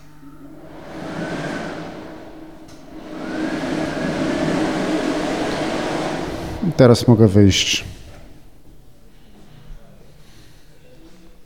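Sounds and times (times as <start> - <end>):
hair dryer running: 0.0 - 8.2
speech: 6.7 - 7.9.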